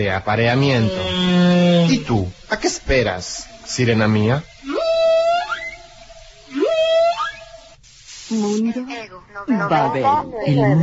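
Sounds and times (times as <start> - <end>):
speech: 0.0 - 4.5, 8.3 - 10.8
whale calls: 0.5 - 2.6, 3.2 - 7.8.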